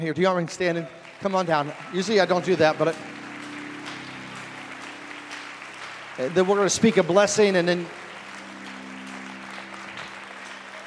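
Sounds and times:
speech: 0.0 - 3.2, 6.2 - 8.0
congregation clapping hands for a man during an anointing and blessing: 0.0 - 10.8.

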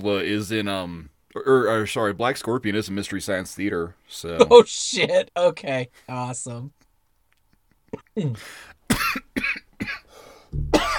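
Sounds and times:
speech: 0.0 - 6.8, 7.9 - 8.8
person coughing from choking on coffee: 8.9 - 10.1, 10.7 - 10.9.

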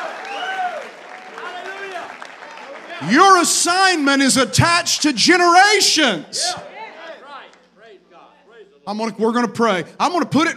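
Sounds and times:
audience clapping: 0.0 - 4.1
speech: 3.0 - 6.7, 8.9 - 10.5.

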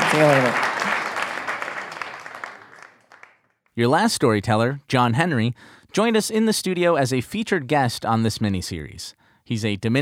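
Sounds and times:
audience applause: 0.0 - 3.5
speech: 0.1 - 0.6, 3.8 - 10.0.

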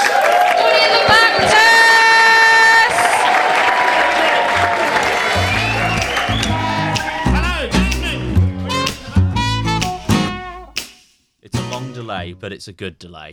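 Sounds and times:
Edinburgh audience applauding and cheering: 0.0 - 9.1
speech: 12.4 - 13.3.

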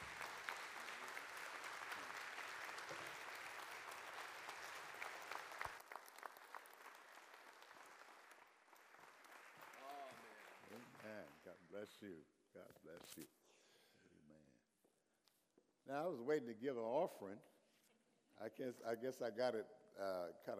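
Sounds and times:
audience applauding a welcomed guest: 0.0 - 12.0
speech: 11.7 - 13.5, 15.9 - 17.5, 18.4 - 20.5.

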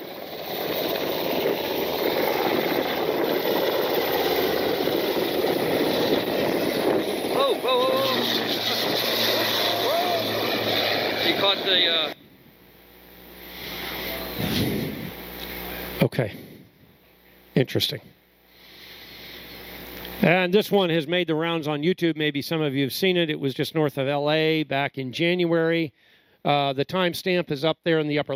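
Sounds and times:
Black Hawk helicopter taking off: 0.0 - 16.7
PC-12 aircraft landing: 0.0 - 17.2, 18.4 - 20.2
speech: 16.2 - 16.5, 17.6 - 18.2, 20.2 - 28.3.

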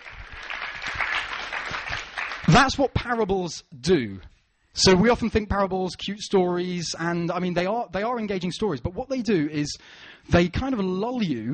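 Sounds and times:
audience applause: 0.0 - 2.7
speech: 2.6 - 11.5.

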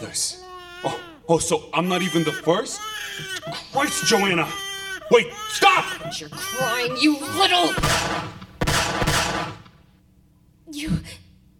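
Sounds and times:
speech: 0.1 - 8.4, 10.7 - 11.2
gunshot: 7.8 - 9.8.

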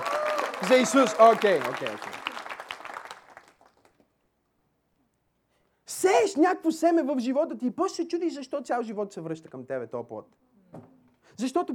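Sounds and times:
audience applause: 0.0 - 4.0
speech: 0.6 - 2.2, 6.4 - 11.7.

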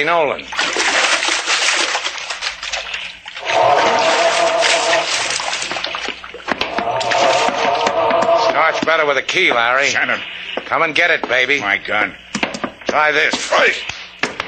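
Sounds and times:
speech: 0.0 - 1.0, 8.7 - 12.2, 12.9 - 13.9
water splashing from a person swimming an overhand side stroke: 0.4 - 10.6.

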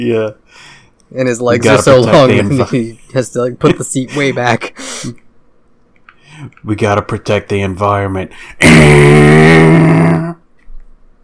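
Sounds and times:
speech: 0.0 - 5.2, 6.4 - 10.4
person imitating a car engine with their voice: 8.6 - 10.4.

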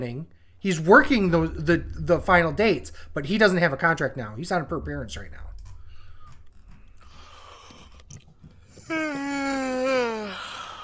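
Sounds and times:
speech: 0.0 - 5.5
loud voiced yawn: 8.8 - 10.8.

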